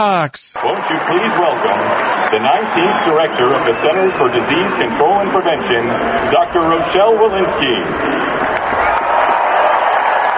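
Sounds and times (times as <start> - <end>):
fans cheering at a Boston Red Sox game first pitch: 0.0 - 4.9, 8.0 - 10.3
speech: 0.0 - 8.9
scattered clapping: 0.6 - 3.6, 8.0 - 10.3.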